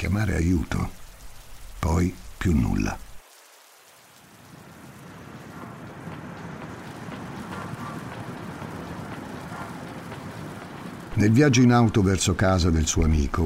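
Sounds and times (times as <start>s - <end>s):
speech: 0.0s - 1.0s, 1.8s - 3.1s, 11.2s - 13.4s
steady rain: 0.0s - 13.4s.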